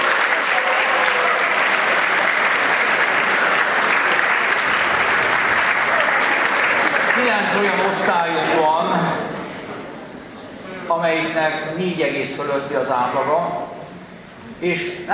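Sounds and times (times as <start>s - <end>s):
audience applause: 0.0s - 8.7s
speech: 10.9s - 13.6s, 14.6s - 15.1s.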